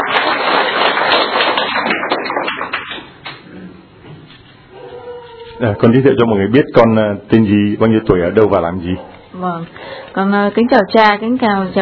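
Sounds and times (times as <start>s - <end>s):
crowd applause: 0.0s - 3.4s
speech: 5.6s - 11.7s.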